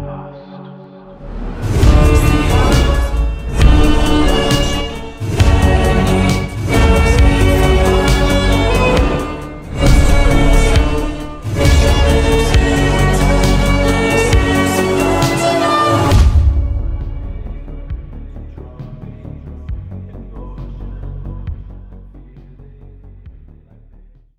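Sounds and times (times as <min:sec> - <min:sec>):
violin: 0:01.4 - 0:17.9.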